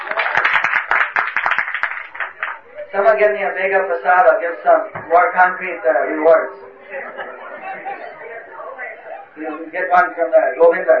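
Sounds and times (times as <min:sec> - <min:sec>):
audience applause: 0:00.0 - 0:02.8
speech: 0:02.9 - 0:07.2, 0:09.4 - 0:10.9
laughter: 0:06.6 - 0:09.7.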